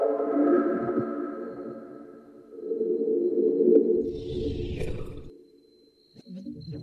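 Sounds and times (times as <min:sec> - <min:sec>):
abstract voice sounds: 0:00.1 - 0:05.3.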